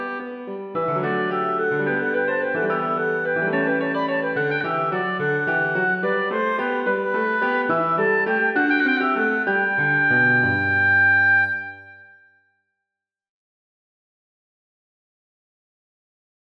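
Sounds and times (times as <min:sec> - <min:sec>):
oboe: 0:00.0 - 0:12.2
piano: 0:00.0 - 0:12.2.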